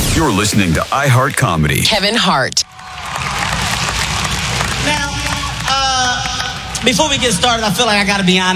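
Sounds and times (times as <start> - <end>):
speech: 0.2 - 2.7, 6.9 - 8.5
audience applause: 2.7 - 6.7.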